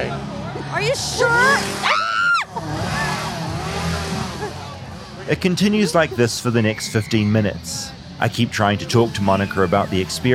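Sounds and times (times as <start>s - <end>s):
speech: 0.7s - 2.0s, 5.3s - 10.3s
laughter: 1.8s - 7.6s
chainsaw revving: 2.5s - 5.3s.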